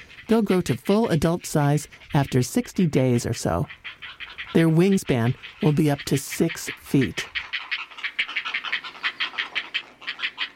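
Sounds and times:
heron fledglings raspy calls: 0.0 - 10.5
speech: 0.3 - 7.4.

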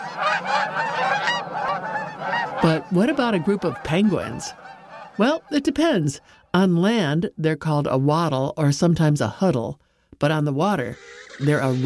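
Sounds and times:
gaggle of geese honking: 0.0 - 6.3
speech: 2.6 - 4.6, 5.2 - 11.8.

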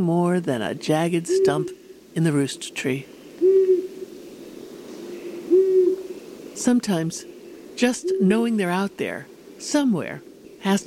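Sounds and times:
speech: 0.0 - 3.2, 6.6 - 10.8
faint hiss: 0.0 - 10.8
long-eared owl hooting: 1.2 - 6.6, 7.2 - 8.5.

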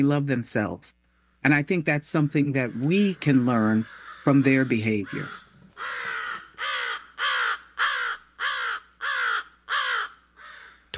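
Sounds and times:
speech: 0.0 - 6.0
crows cawing: 2.7 - 10.9.

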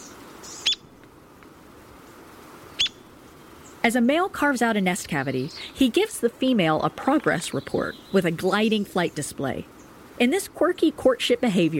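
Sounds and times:
small woodpecker giving sharp high-pitched call notes: 0.0 - 0.9, 2.7 - 3.8, 7.6 - 8.2
low hiss: 0.0 - 11.7
speech: 3.8 - 11.7.

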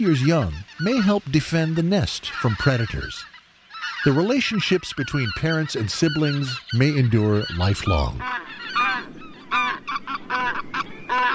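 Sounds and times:
speech: 0.0 - 3.3, 4.0 - 8.8
white-fronted geese honking: 0.0 - 11.3.

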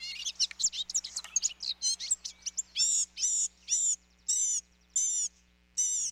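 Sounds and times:
blue-gray gnatcatcher singing: 0.0 - 6.1.

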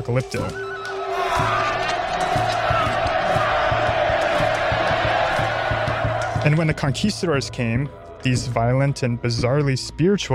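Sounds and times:
speech: 0.0 - 0.8, 1.4 - 2.4, 6.4 - 10.3
crowd of onlookers cheering wildly: 0.6 - 7.6.

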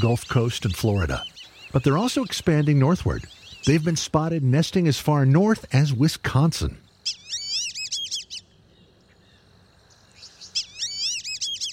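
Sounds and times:
black-bellied whistling ducks whistling: 0.0 - 4.2, 7.0 - 8.5, 10.5 - 11.7
speech: 0.0 - 6.8
faint hum of insects: 0.0 - 11.7.

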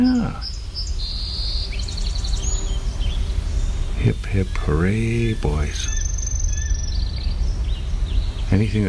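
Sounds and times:
speech: 0.0 - 0.5, 4.0 - 6.0, 8.5 - 8.8
song sparrow singing: 0.0 - 8.8
steady low rumble: 2.1 - 8.8.

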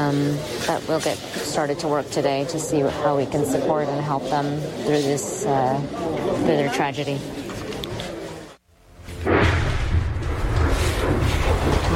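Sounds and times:
speech: 0.0 - 7.4
close explosion of incoming shell: 9.2 - 11.8.

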